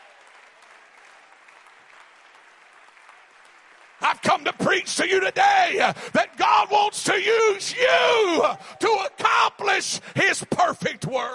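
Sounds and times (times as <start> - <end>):
audience clapping: 0.0 - 7.6
speech: 4.0 - 11.3.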